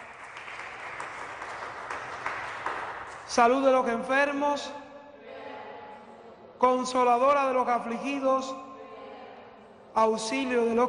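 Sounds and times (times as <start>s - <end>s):
applause: 0.0s - 3.4s
speech: 3.3s - 4.8s, 6.6s - 8.6s, 10.0s - 10.8s.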